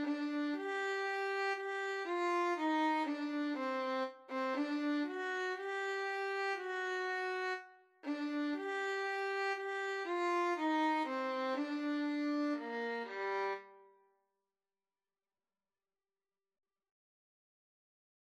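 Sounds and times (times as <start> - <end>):
violin playing gavotte: 0.0 - 13.8.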